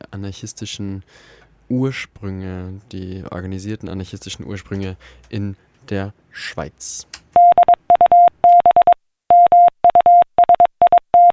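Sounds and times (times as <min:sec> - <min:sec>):
speech: 0:00.2 - 0:07.2
Morse code telegraph transmission tone: 0:07.4 - 0:11.3.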